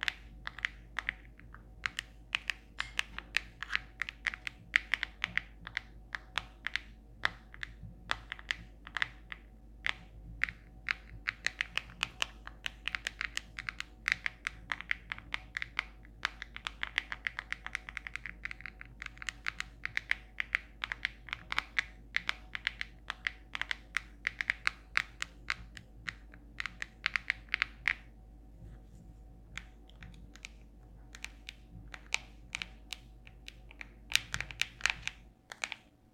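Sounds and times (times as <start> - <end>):
fingers tapping a cellphone screen and case: 0.0 - 28.8, 29.5 - 35.9
steady low hum: 25.1 - 36.1.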